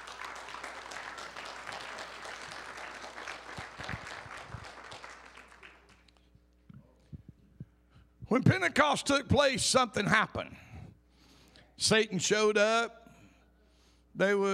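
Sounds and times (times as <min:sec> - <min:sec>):
audience clapping hands in praise: 0:00.0 - 0:06.3
speech: 0:08.3 - 0:10.6, 0:11.8 - 0:13.0, 0:14.2 - 0:14.5.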